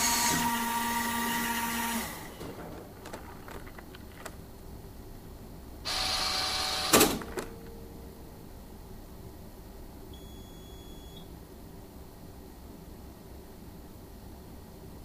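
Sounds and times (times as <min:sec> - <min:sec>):
dispensing machine: 0:00.0 - 0:04.6, 0:05.9 - 0:08.1.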